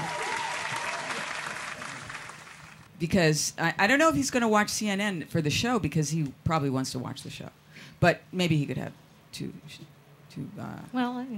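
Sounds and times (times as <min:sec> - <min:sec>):
studio audience applause: 0:00.0 - 0:02.9
speech: 0:03.0 - 0:11.3.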